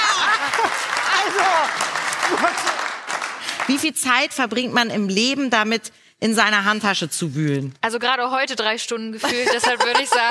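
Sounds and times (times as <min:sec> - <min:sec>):
laughter: 0:00.0 - 0:02.9, 0:09.2 - 0:10.3
audience clapping: 0:00.0 - 0:04.4
speech: 0:03.7 - 0:10.3.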